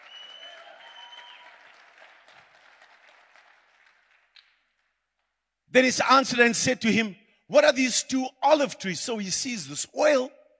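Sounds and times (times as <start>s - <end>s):
audience clapping hands: 0.0s - 5.3s
speech: 5.7s - 10.4s.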